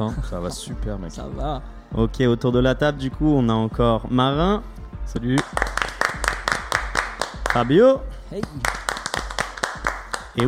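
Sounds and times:
speech: 0.0s - 5.6s, 7.6s - 8.8s
rhythmic clapping: 5.1s - 10.4s.

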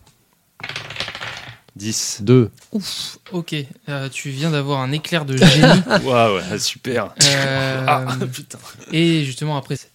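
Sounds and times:
dice rolled across a hard surface: 0.6s - 1.7s
speech: 1.8s - 9.9s
laughter: 5.4s - 6.2s.

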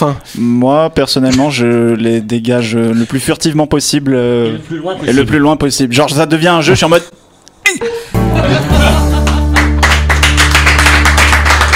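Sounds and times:
speech: 0.0s - 7.2s
laughter: 8.2s - 9.8s
several people clapping: 8.7s - 11.7s.

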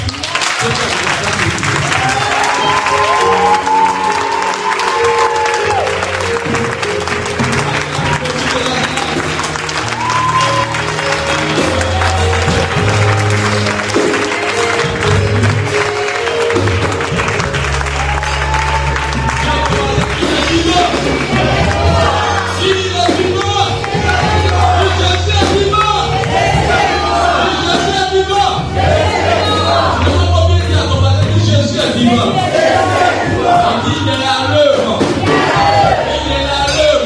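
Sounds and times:
church congregation clapping: 0.0s - 37.0s
church congregation cheering and shouting: 1.9s - 6.0s, 9.8s - 10.9s, 18.0s - 30.6s, 31.9s - 37.0s.

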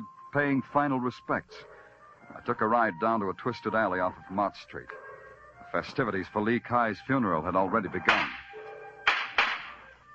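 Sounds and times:
speech: 0.3s - 5.0s, 5.7s - 8.3s
firecrackers going off: 9.1s - 9.8s.

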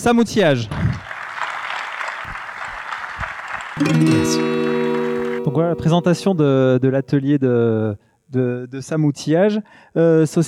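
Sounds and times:
speech: 0.0s - 0.8s, 3.8s - 4.6s, 5.5s - 10.4s
audience applause: 1.0s - 5.8s.

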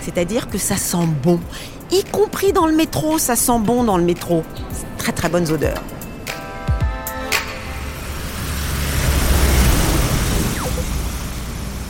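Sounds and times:
speech: 0.0s - 6.0s
city traffic ambience among skyscrapers: 0.0s - 11.8s
faint high whine: 10.2s - 11.8s.

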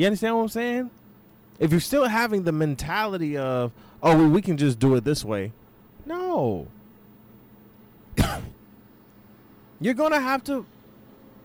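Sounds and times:
speech: 0.0s - 1.0s, 1.6s - 6.8s, 9.8s - 10.7s
throat clearing: 8.1s - 8.6s.

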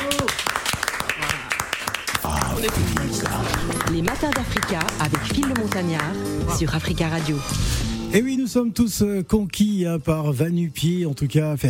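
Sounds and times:
applause in the studio: 0.0s - 6.2s
speech: 2.6s - 11.6s.

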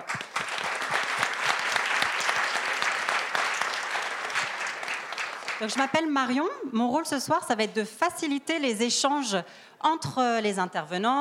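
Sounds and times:
audience applause: 0.0s - 6.1s
speech: 5.6s - 11.1s.

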